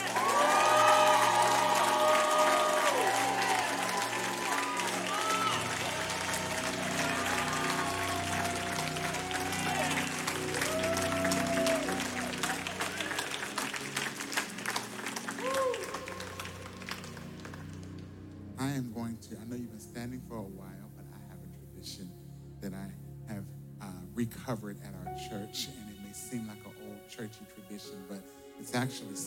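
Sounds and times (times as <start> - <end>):
church audience whoops and shouts: 0.0 - 13.4, 15.4 - 16.7
church audience clapping: 0.0 - 18.2
speech: 24.5 - 26.4, 27.2 - 29.2.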